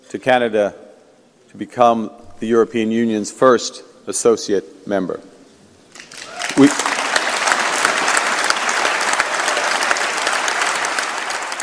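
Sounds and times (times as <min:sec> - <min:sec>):
speech: 0:00.1 - 0:00.8, 0:01.5 - 0:05.3, 0:06.6 - 0:06.9
applause in parliament chamber: 0:05.9 - 0:11.6.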